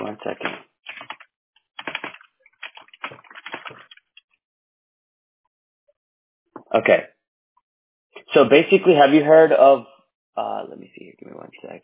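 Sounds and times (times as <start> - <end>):
speech: 0.2 - 0.6, 6.7 - 7.2, 8.4 - 11.8
typing a search on a computer keyboard: 0.4 - 4.2.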